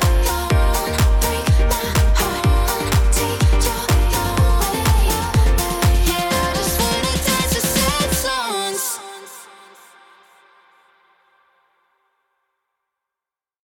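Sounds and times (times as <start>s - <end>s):
sad songs: 0.0s - 10.7s.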